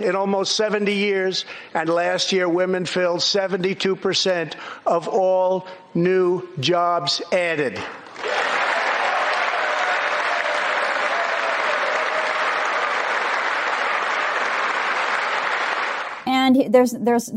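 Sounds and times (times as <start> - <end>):
speech: 0.0 - 8.0, 16.7 - 17.3
large audience applause at a speech: 8.1 - 16.2.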